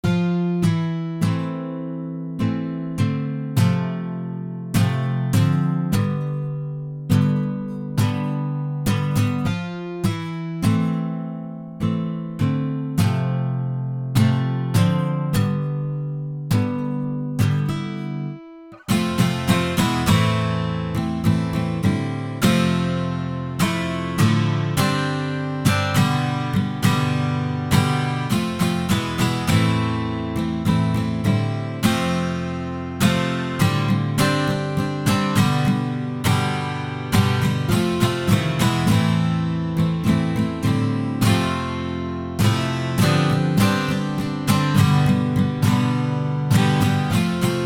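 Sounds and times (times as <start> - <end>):
guitar playing: 0.0 - 47.6.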